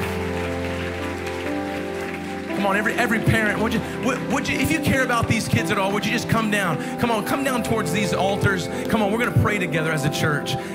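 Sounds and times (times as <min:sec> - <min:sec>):
crowd applause: 0:00.0 - 0:06.7
speech: 0:02.6 - 0:10.7.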